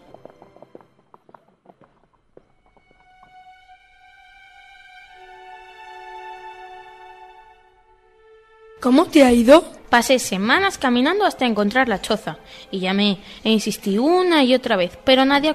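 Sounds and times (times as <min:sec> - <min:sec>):
horse hooves clip-clopping: 0:00.0 - 0:04.1
sustained swelling harmonic musical tone: 0:03.1 - 0:09.8
speech: 0:08.8 - 0:15.5.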